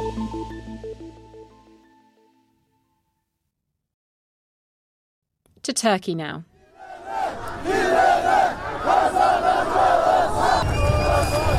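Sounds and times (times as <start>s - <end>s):
speech: 5.6s - 6.5s
large crowd of protesters chanting in unison: 6.6s - 11.5s.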